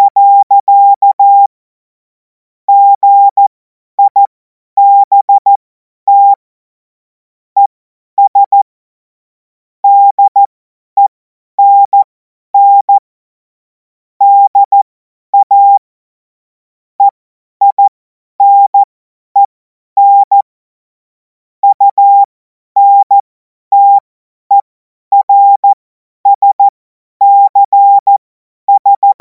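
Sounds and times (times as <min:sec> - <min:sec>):
CW Morse code beeps: 0:00.0 - 0:01.5, 0:02.7 - 0:06.4, 0:08.2 - 0:08.7, 0:09.8 - 0:13.0, 0:14.2 - 0:15.8, 0:17.0 - 0:20.5, 0:21.6 - 0:29.1.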